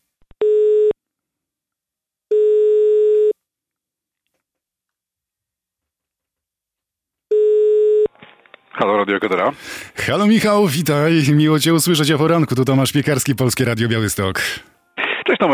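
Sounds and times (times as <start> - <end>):
telephone ringback tone while dialing a call: 0.4 - 1.0, 2.3 - 3.4, 7.3 - 8.1
speech: 8.8 - 14.7, 15.4 - 15.5.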